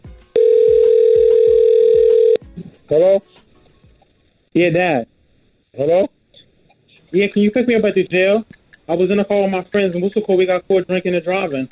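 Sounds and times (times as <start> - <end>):
telephone ringing tone: 0.4 - 2.4
speech: 2.9 - 3.4, 4.6 - 5.1, 5.8 - 6.2, 7.1 - 11.7.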